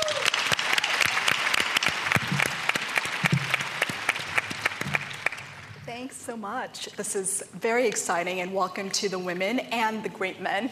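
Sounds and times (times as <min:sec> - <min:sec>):
audience applauding a speaker's introduction at a talk: 0:00.0 - 0:05.8
speech: 0:06.3 - 0:10.7.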